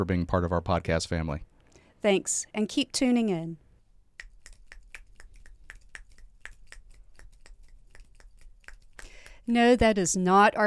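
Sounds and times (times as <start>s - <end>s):
speech: 0.0s - 3.6s, 9.5s - 10.6s
many fingers snapping as applause: 4.2s - 9.4s.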